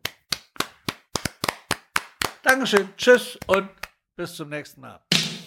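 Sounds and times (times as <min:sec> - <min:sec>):
sharp hand claps: 0:00.0 - 0:04.0
speech: 0:02.4 - 0:05.1.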